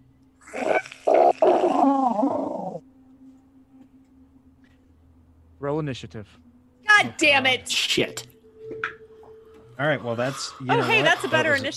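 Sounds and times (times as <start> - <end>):
faint steady hum: 0.0 - 11.7
person voicing a tentacled monster's growl: 0.4 - 2.8
speech: 5.6 - 8.3, 9.8 - 11.7.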